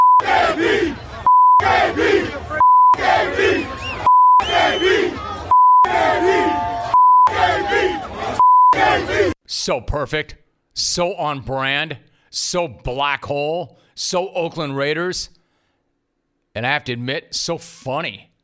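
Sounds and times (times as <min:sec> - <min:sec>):
stadium crowd chanting: 0:00.0 - 0:09.4
speech: 0:07.5 - 0:15.4, 0:16.6 - 0:18.3.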